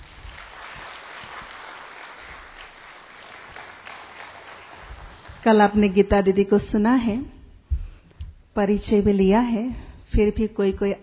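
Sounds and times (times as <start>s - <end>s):
audience applause: 0.0s - 5.5s
speech: 5.4s - 7.4s, 8.6s - 11.0s.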